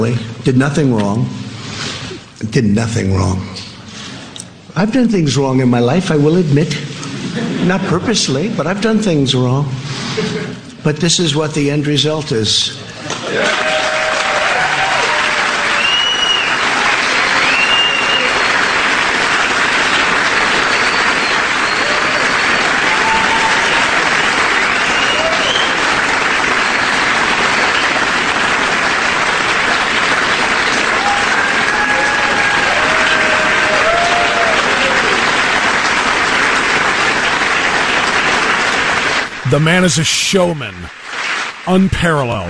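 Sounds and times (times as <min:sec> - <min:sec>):
speech: 0:00.0 - 0:01.4, 0:02.4 - 0:03.6, 0:04.8 - 0:06.9, 0:07.7 - 0:13.5, 0:39.5 - 0:41.0, 0:41.6 - 0:42.4
large audience applauding: 0:13.0 - 0:42.4
cheers and whistles: 0:13.2 - 0:19.2, 0:20.6 - 0:26.0, 0:30.9 - 0:35.2.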